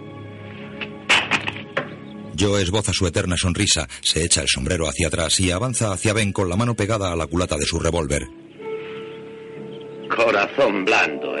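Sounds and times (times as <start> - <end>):
rifle thrown to the ground: 1.1 - 2.0
speech: 2.4 - 8.5, 10.2 - 11.3.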